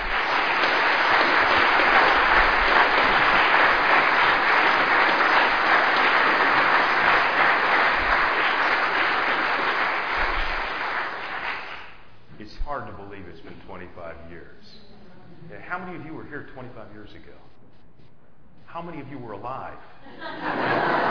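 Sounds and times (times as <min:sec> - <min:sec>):
audience applauding to welcome a speaker: 0:00.0 - 0:12.1, 0:20.5 - 0:21.0
laughter: 0:20.0 - 0:21.0.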